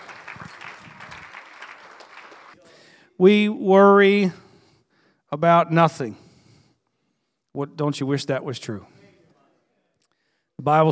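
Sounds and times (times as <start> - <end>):
audience clapping hands: 0.0 - 2.6
speech: 3.2 - 4.4, 5.3 - 6.2, 7.6 - 9.0, 10.6 - 10.9.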